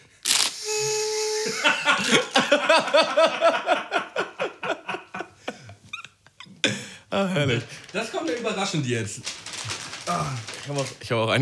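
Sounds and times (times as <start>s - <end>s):
rustling: 0.0s - 0.9s, 7.4s - 11.4s
small party horn blaring: 0.2s - 2.5s
people laughing: 0.7s - 5.8s
speech: 1.6s - 4.0s, 7.2s - 9.4s, 10.1s - 11.4s.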